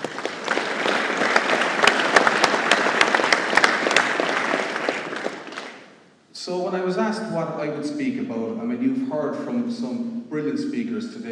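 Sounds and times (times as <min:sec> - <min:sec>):
audience applause: 0:00.0 - 0:05.9
speech: 0:07.2 - 0:11.3.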